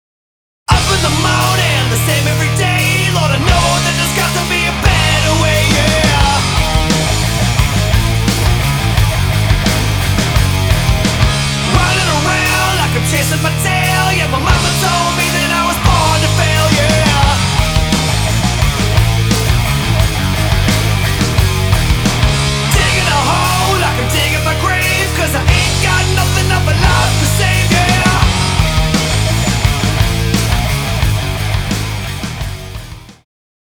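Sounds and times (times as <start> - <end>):
hard rock electric guitar: 0.7 - 33.2.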